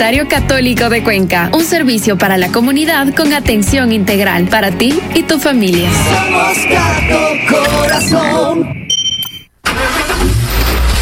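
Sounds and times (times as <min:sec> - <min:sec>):
speech: 0:00.0 - 0:08.8
turbo diesel pickup engine starting: 0:09.6 - 0:11.0.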